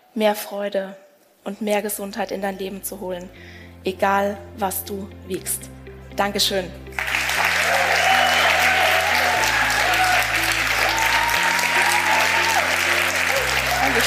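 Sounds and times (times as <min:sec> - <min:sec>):
speech: 0:00.2 - 0:07.0
audience applause: 0:07.0 - 0:14.0.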